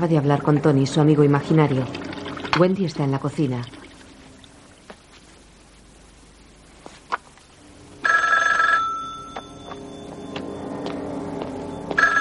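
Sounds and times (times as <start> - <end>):
speech: 0.0 - 3.8
low steady hum: 0.0 - 12.2
telephone ringing: 8.0 - 10.9, 11.6 - 12.2.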